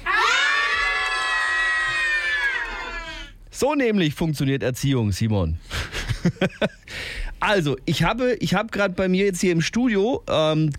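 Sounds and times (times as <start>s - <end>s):
group of children shouting loudly: 0.0s - 3.2s
speech: 3.6s - 10.7s.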